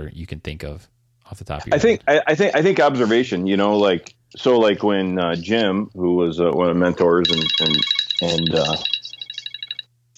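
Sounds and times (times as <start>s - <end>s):
speech: 0.0s - 9.0s
mobile phone ringtone: 7.2s - 9.9s.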